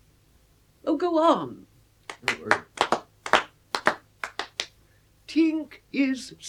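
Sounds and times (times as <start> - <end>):
speech: 0.9 - 2.7, 5.3 - 6.4
audience clapping hands: 2.1 - 4.8.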